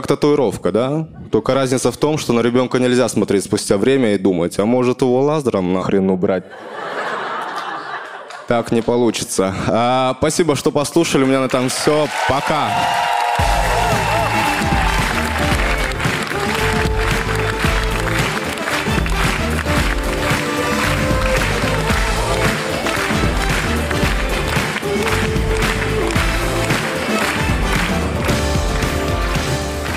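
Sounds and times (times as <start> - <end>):
speech: 0.0 - 6.9, 8.5 - 13.5
laughter: 6.4 - 8.8
audience applause: 11.2 - 29.9
music: 12.8 - 29.9.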